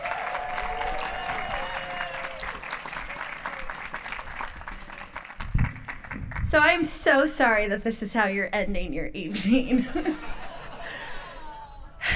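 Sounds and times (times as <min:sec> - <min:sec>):
audience applauding a comedian taking the stage: 0:00.0 - 0:06.5
speech: 0:06.5 - 0:10.4
laughter: 0:09.7 - 0:12.1.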